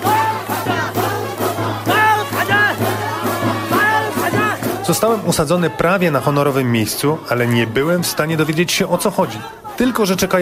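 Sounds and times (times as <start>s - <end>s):
crowd singing in an open house: 0.0s - 10.4s
speech: 4.9s - 10.4s.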